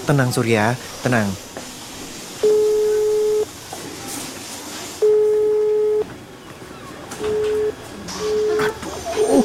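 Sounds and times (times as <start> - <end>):
speech: 0.0 - 1.5
noisy background: 0.0 - 9.4
phone call busy tone beeps: 2.4 - 3.5, 5.0 - 6.1, 7.2 - 8.6.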